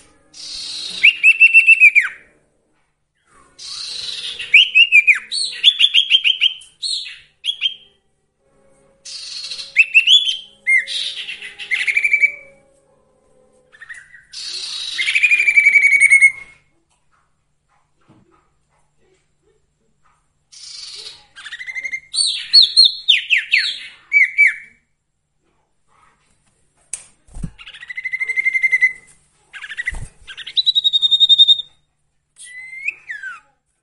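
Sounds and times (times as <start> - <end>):
song: 0.0 - 2.4, 3.2 - 8.0, 8.8 - 12.8, 13.6 - 16.6, 20.5 - 24.8, 27.6 - 31.8.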